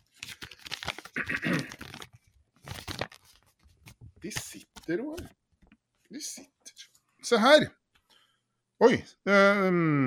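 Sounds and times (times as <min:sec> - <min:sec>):
envelope paper crinkling and tearing: 0:00.0 - 0:05.2
speech: 0:04.3 - 0:05.4, 0:07.3 - 0:07.8, 0:08.8 - 0:10.0.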